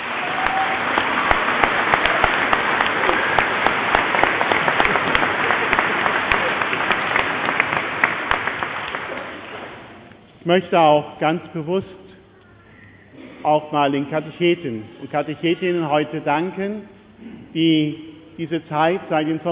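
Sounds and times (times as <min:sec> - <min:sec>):
audience applauding: 0:00.0 - 0:10.1
speech: 0:10.5 - 0:12.0, 0:13.5 - 0:19.4.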